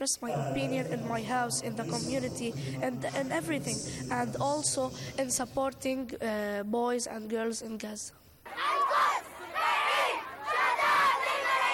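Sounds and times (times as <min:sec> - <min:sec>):
speech: 0:00.0 - 0:08.2
crowd of protesters shouting in rhythmic chant-like bursts: 0:08.5 - 0:11.7.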